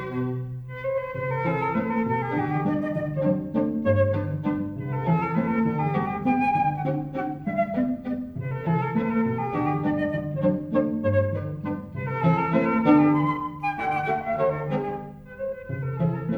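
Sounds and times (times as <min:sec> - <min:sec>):
cello: 0:00.0 - 0:16.3
flute: 0:00.0 - 0:16.3
violin: 0:00.0 - 0:16.3.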